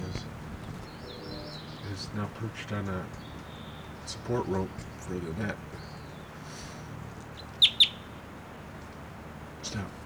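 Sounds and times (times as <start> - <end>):
hiss: 0.0 - 10.0
bird chirps: 0.8 - 2.0, 3.1 - 4.2, 5.8 - 8.2
speech: 2.0 - 3.2, 4.1 - 5.8.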